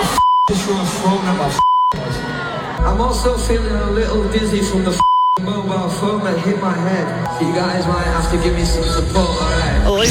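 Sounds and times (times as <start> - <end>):
censor bleeps over swearing: 0.2 - 0.6, 1.6 - 2.0, 4.9 - 5.4
speech: 0.7 - 2.2, 2.9 - 10.1.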